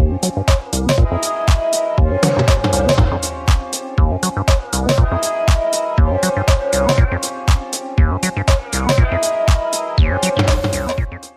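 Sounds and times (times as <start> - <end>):
acid dub music: 0.0 - 11.3.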